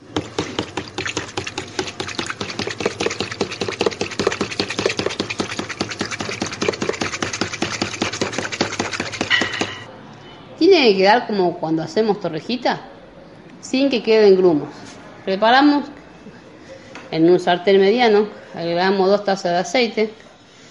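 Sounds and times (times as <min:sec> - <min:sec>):
dough ingredients being mixed in a bowl: 0:00.0 - 0:09.9
speech: 0:10.8 - 0:13.0, 0:13.7 - 0:16.0, 0:17.1 - 0:20.2.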